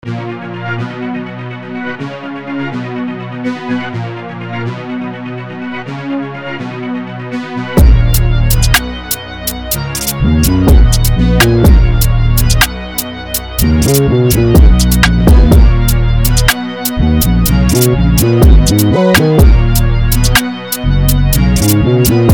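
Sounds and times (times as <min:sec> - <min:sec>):
music beat: 0:07.6 - 0:22.3.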